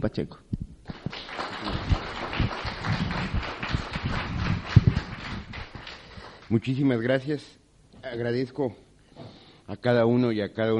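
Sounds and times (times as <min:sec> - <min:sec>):
speech: 0:00.0 - 0:00.5, 0:06.5 - 0:08.8, 0:09.7 - 0:10.7
audience applause: 0:00.9 - 0:06.5.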